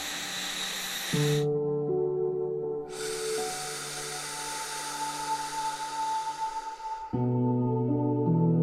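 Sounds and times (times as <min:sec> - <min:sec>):
deep breathing during a guided relaxation: 0:00.0 - 0:01.5, 0:02.8 - 0:07.4
tonal music drone: 0:00.0 - 0:08.6.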